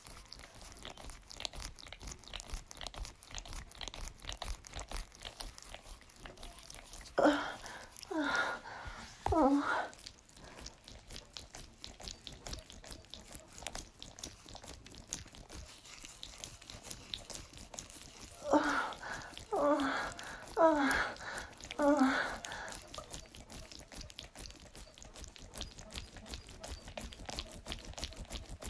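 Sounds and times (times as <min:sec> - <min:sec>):
wet noises: 0:00.0 - 0:28.6
person whimpering: 0:07.1 - 0:10.0, 0:18.4 - 0:23.0.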